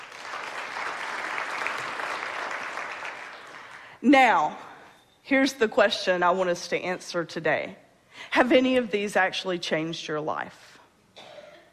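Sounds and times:
audience clapping: 0.0 - 3.9
speech: 4.0 - 4.6, 5.2 - 10.7.

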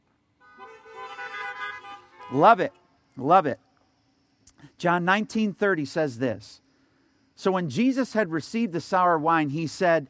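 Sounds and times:
car horns honking: 0.4 - 3.0
speech: 2.3 - 3.6, 4.6 - 6.6, 7.4 - 10.0.

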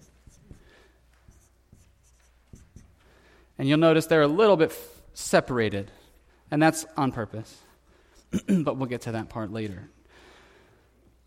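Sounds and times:
marker scratching on board drawing stick figures: 0.0 - 3.0
speech: 3.6 - 7.7, 8.3 - 10.0.

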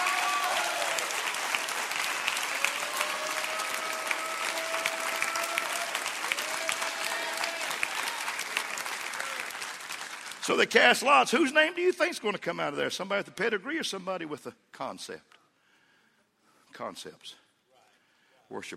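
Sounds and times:
audience clapping hands: 0.0 - 11.3
speech: 10.5 - 15.3, 16.8 - 17.4, 18.5 - 18.7.

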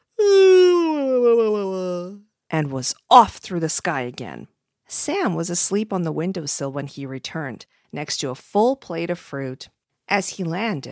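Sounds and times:
narrator voicing a dragon yawning: 0.2 - 2.2
speech: 2.5 - 10.8.

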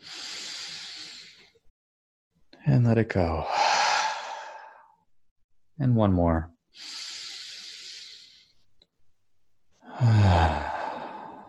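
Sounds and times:
deep breath in during a guided meditation: 0.0 - 1.6, 3.5 - 5.0, 6.8 - 8.6, 9.8 - 11.4
speech: 2.6 - 3.6, 5.8 - 7.0, 10.0 - 10.4.

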